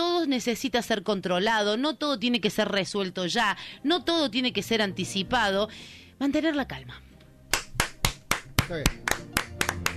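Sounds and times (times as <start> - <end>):
speech: 0.3 - 7.1, 8.7 - 9.4
audience clapping: 7.5 - 9.9.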